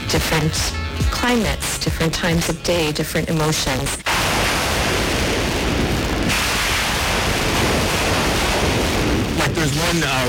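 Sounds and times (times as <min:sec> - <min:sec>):
speech: 0:00.2 - 0:04.4, 0:09.9 - 0:10.2
synthesized thunder rolls: 0:04.1 - 0:10.2.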